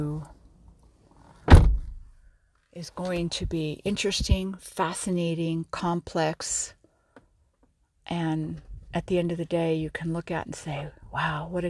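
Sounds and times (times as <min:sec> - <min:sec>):
speech: 0:00.0 - 0:00.4, 0:02.8 - 0:06.8, 0:08.1 - 0:11.6
car door closing: 0:01.4 - 0:02.0.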